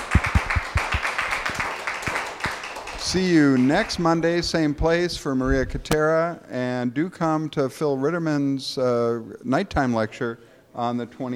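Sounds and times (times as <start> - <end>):
crowd clapping: 0.0 - 4.3
speech: 3.0 - 11.3.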